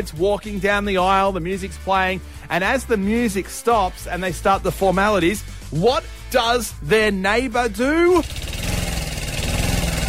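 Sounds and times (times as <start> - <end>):
speech: 0.0 - 8.4
lawnmower engine running: 6.8 - 10.0.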